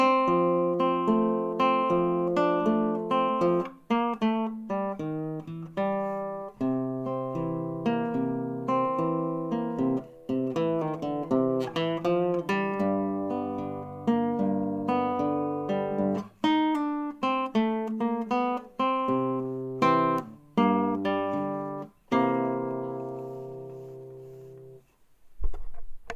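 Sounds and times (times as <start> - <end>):
blues guitar: 0.0 - 24.8.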